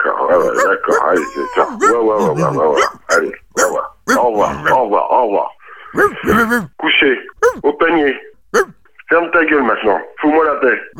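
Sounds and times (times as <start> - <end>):
dog named Toutounette barking at home: 0.3 - 4.8, 6.0 - 6.7, 7.4 - 7.6
speech: 0.3 - 10.9.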